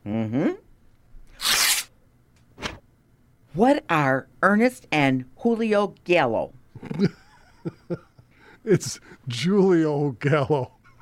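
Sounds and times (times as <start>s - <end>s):
envelope being torn open: 1.4s - 1.9s
speech: 3.6s - 8.0s, 8.6s - 10.8s.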